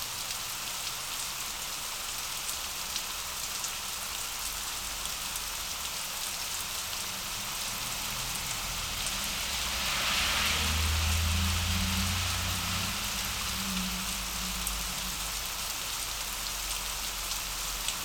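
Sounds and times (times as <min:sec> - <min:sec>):
rain in the city: 0:00.0 - 0:18.0
big city noise: 0:03.4 - 0:18.0
thunder in the city: 0:09.2 - 0:14.5.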